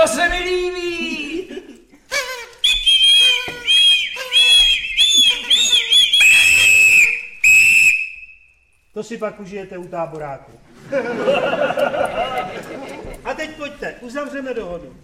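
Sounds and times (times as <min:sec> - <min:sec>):
speech: 0:00.0 - 0:01.0, 0:09.1 - 0:15.0
laughter: 0:01.1 - 0:02.1, 0:10.7 - 0:13.8
party blower tooting: 0:02.0 - 0:08.2.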